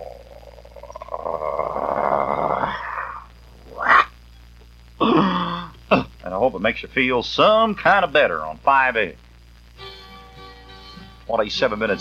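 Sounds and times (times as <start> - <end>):
voice imitating a growl: 0.0 - 4.1, 5.0 - 5.8
speech: 6.6 - 9.2, 11.3 - 11.9.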